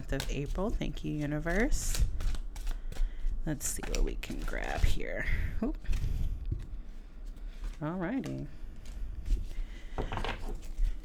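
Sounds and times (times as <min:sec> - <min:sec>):
tarot cards being shuffled: 0:00.0 - 0:11.0
speech: 0:00.1 - 0:02.1, 0:03.4 - 0:06.2, 0:07.8 - 0:08.6.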